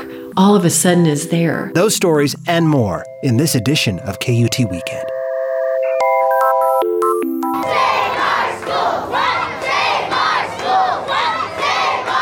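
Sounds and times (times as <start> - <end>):
speech: 0.4 - 5.2
electronic beeping tones: 1.7 - 8.2
crowd of children, parents, teachers and politicians chanting outside Austin City Hall: 7.6 - 12.2.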